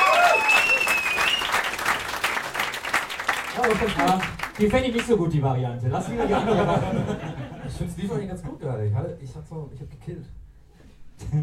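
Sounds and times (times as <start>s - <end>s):
live audience applause: 0.0s - 5.1s
speech: 3.6s - 10.4s, 11.2s - 11.4s
laughter: 5.9s - 7.8s.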